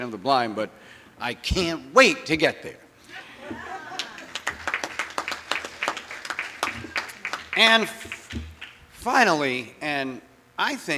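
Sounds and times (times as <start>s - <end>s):
speech: 0.0s - 2.8s, 7.6s - 8.4s, 9.0s - 10.9s
laughter: 3.1s - 4.8s
audience applause: 3.5s - 8.7s.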